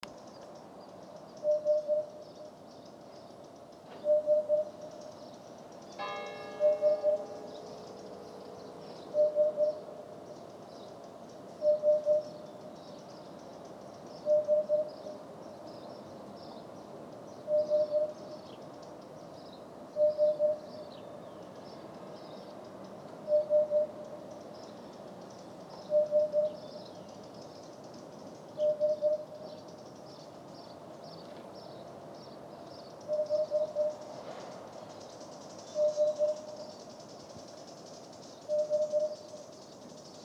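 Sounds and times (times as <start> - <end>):
Eurasian hoopoe calling: 1.4 - 2.2, 4.0 - 5.1, 6.4 - 12.6, 14.2 - 15.2, 17.5 - 18.4, 20.0 - 20.8, 23.3 - 24.2, 25.8 - 26.6, 28.6 - 29.5, 33.1 - 34.1, 35.7 - 36.8, 38.5 - 39.4.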